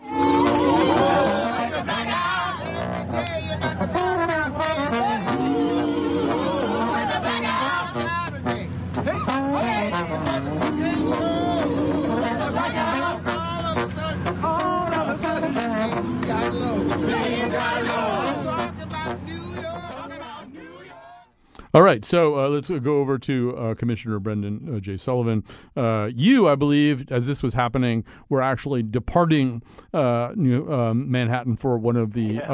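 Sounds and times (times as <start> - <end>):
trombone improvising a sliding bluesy lick: 0.0 - 20.3
street crowd chatter: 0.0 - 21.2
speech: 21.8 - 32.5.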